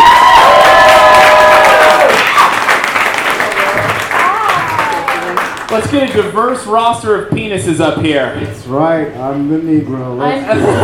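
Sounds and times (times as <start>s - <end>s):
audience applause for a comedian: 0.0s - 6.5s
speech: 5.8s - 10.8s
laughter: 10.4s - 10.8s.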